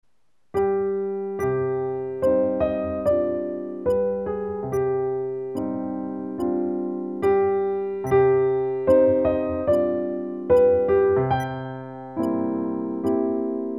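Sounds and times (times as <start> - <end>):
piano: 0.5 - 13.7.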